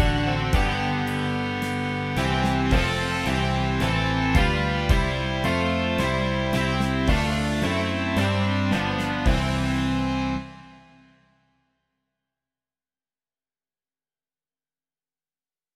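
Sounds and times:
rock music: 0:00.0 - 0:11.0.

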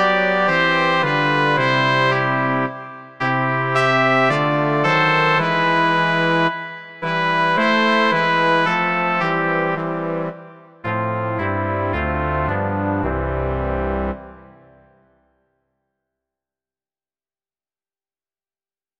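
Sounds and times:
brass quartet: 0:00.0 - 0:14.8.

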